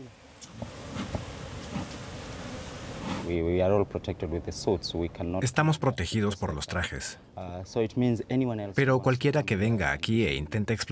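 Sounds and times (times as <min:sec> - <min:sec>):
honeybees buzzing around hives: 0:00.1 - 0:03.3
speech: 0:03.3 - 0:10.9.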